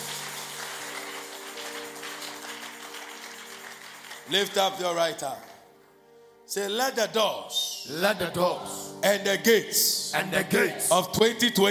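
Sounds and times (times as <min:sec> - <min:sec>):
audience clapping: 0:00.0 - 0:05.6
speech: 0:04.3 - 0:05.5, 0:06.5 - 0:11.7.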